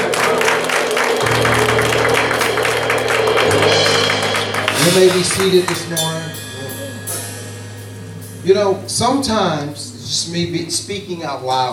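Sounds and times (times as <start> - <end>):
audience clapping: 0.0 - 6.4
low sustained organ-like tone: 0.0 - 11.7
speech: 4.9 - 6.2, 8.4 - 11.7.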